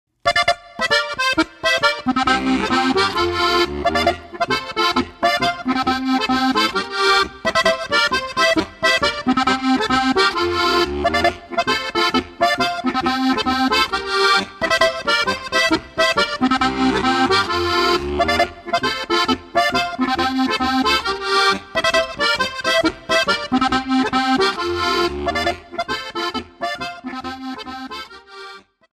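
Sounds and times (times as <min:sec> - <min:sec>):
polka music: 0:00.2 - 0:28.9.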